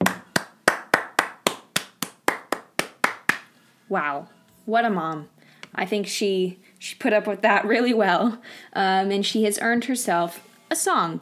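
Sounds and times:
single person clapping: 0.0 - 3.5
speech: 3.9 - 11.2.

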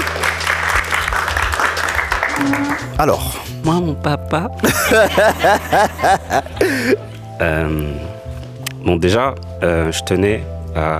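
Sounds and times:
audience applause: 0.0 - 3.2
speech: 2.4 - 8.1, 8.8 - 10.9
laughter: 4.6 - 7.2.

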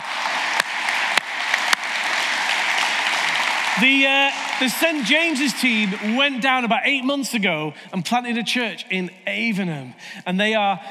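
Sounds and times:
audience applause: 0.0 - 6.7
speech: 3.8 - 10.9.

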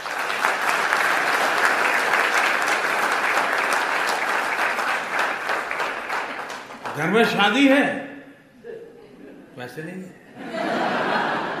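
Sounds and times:
hand clapping: 0.0 - 7.2
speech: 7.0 - 8.1, 9.6 - 11.3
laughter: 10.3 - 11.5.

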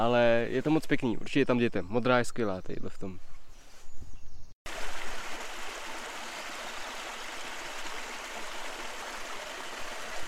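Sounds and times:
speech: 0.0 - 3.4
small waterfall trickling: 4.7 - 10.2.

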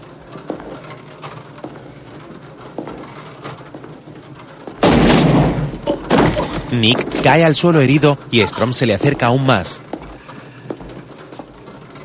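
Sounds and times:
gunshot in the 1990 action police film The Rookie: 4.8 - 6.6
speech: 6.7 - 9.8.

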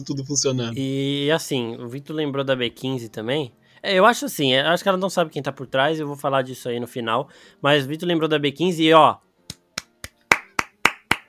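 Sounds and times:
speech: 0.0 - 9.3
sharp hand claps in a steady rhythm: 9.4 - 11.2.

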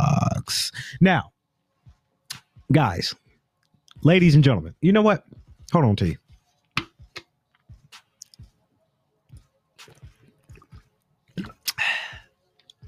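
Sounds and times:
speech: 1.0 - 1.3, 2.7 - 3.2, 4.0 - 6.2
gulping a drink of water: 11.4 - 11.8.

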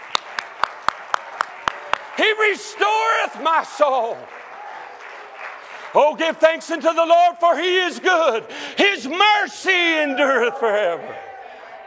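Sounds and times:
audience clapping hands: 0.0 - 7.2
speech: 2.2 - 4.4, 6.0 - 11.3.

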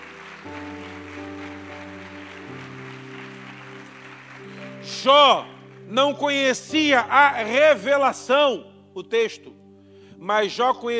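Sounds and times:
applause: 0.0 - 6.8
speech: 0.4 - 0.9, 5.0 - 9.6, 10.2 - 10.9.

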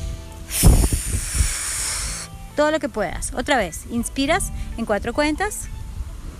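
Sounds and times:
forceful exhale through the mouth: 0.5 - 2.3
speech: 2.6 - 5.8.

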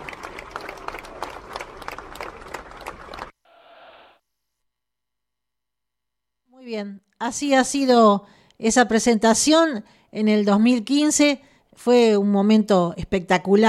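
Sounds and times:
stadium crowd applause: 0.0 - 3.4
speech: 6.7 - 13.6.

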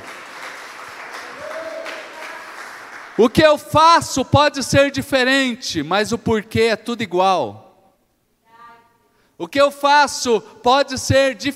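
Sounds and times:
audience applause: 0.0 - 3.2
speech: 3.2 - 7.6, 9.4 - 11.5.

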